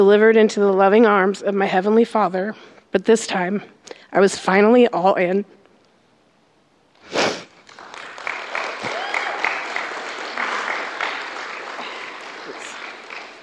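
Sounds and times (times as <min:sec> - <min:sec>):
speech: 0:00.0 - 0:05.6
audience clapping: 0:07.5 - 0:13.4.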